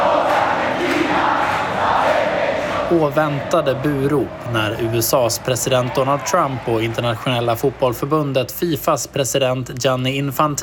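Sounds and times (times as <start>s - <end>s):
Argentine fans singing at the World Cup final: 0.0s - 3.5s
stadium crowd roar at the World Cup final: 0.0s - 9.2s
speech: 2.9s - 10.6s.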